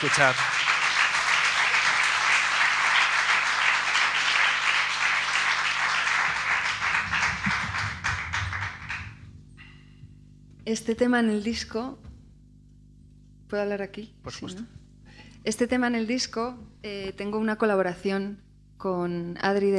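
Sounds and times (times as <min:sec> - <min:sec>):
speech: 0:00.0 - 0:00.7, 0:10.7 - 0:12.0, 0:13.5 - 0:14.8, 0:15.4 - 0:19.7
audience applause: 0:00.0 - 0:09.3.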